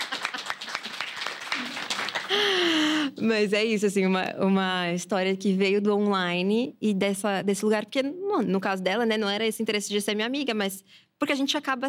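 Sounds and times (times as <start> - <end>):
applause: 0.0 - 3.0
speech: 2.3 - 11.8.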